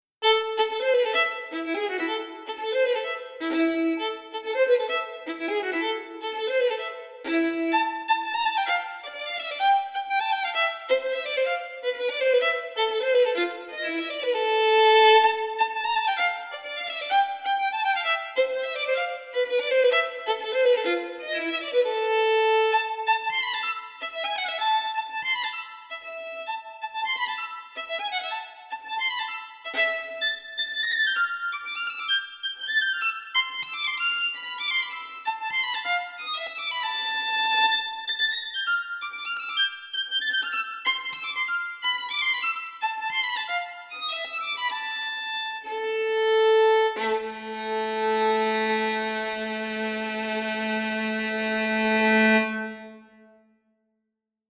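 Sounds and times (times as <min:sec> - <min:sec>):
violin: 0:00.2 - 0:53.5.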